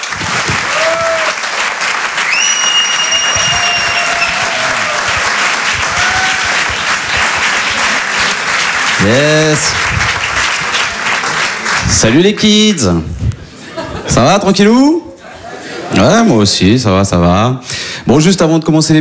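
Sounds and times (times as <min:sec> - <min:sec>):
audience applause at a comedy club: 0:00.0 - 0:12.5
high whistles: 0:02.2 - 0:05.4
speech: 0:09.0 - 0:10.1, 0:11.9 - 0:13.4, 0:14.1 - 0:15.0, 0:15.9 - 0:19.0
laughter: 0:13.3 - 0:16.5.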